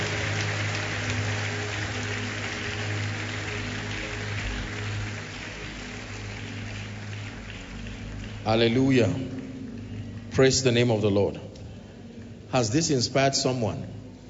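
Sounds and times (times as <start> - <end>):
audience clapping hands: 0.0 - 11.1
speech: 8.5 - 9.3, 10.4 - 11.4, 12.5 - 14.0.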